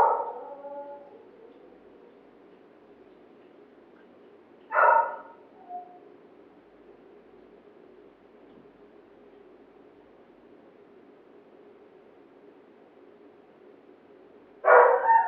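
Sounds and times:
dog barking and howling: 0.0s - 2.2s, 4.7s - 6.0s, 14.6s - 15.2s.

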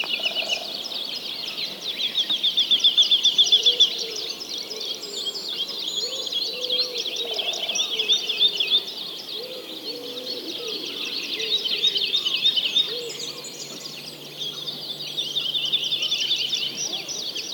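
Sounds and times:
many birds chirping and trilling together: 0.0s - 17.5s.

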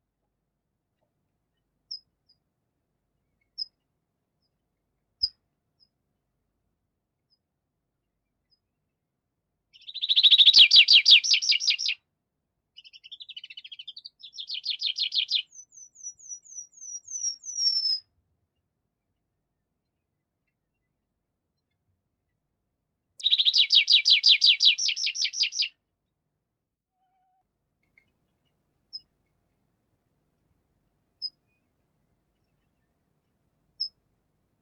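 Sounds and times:
Tree Pipit trilling song: 9.9s - 12.0s, 14.4s - 18.0s, 23.2s - 25.7s.

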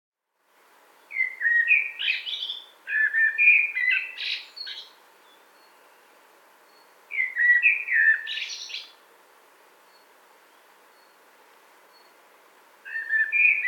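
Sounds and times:
common blackbird singing: 1.1s - 6.1s, 6.7s - 9.0s, 12.9s - 13.6s.

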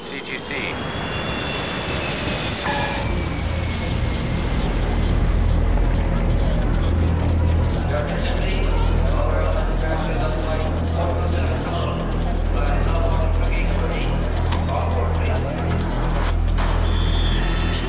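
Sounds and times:
airplane approaching Los Angeles International Airport: 0.0s - 17.8s.

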